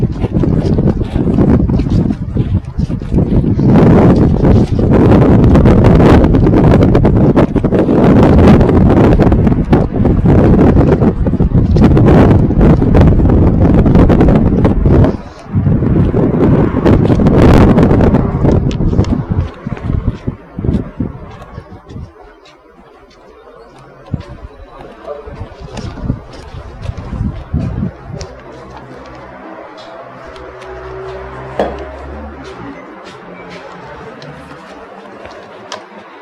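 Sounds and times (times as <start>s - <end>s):
street noise: 0.0s - 36.1s.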